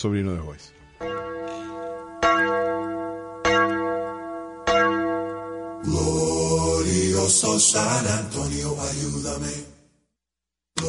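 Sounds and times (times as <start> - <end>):
speech: 0.0 - 0.8, 5.8 - 9.7
music: 0.0 - 9.9
bell strikes at the start of a song: 1.0 - 5.9.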